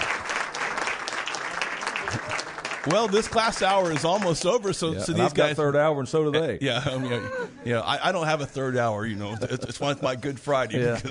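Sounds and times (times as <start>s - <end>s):
students applauding: 0.0s - 4.9s
speech: 2.1s - 11.1s.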